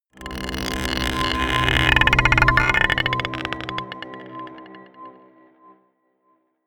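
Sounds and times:
dark drones: 0.2s - 5.6s
scraping a marble pot: 0.3s - 4.7s.

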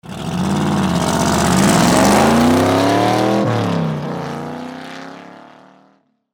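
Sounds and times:
Cobra 427 RS car passing quickly: 0.1s - 4.1s.

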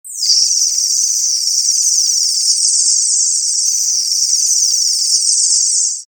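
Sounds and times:
cluster of insects buzzing: 0.1s - 6.1s.

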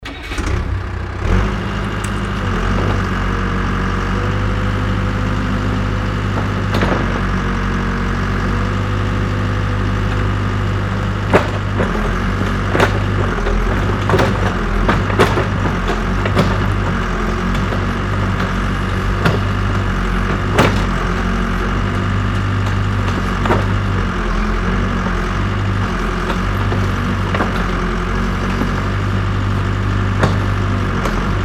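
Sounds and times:
digger unloading rubble: 0.0s - 31.4s.

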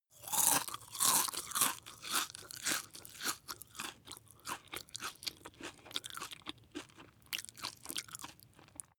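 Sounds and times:
biscuit chewing: 0.2s - 8.9s.

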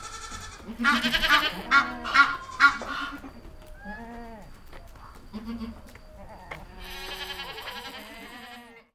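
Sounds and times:
farmyard goats bleating: 0.0s - 4.6s, 5.3s - 8.9s
farmyard geese honking: 0.8s - 3.3s.

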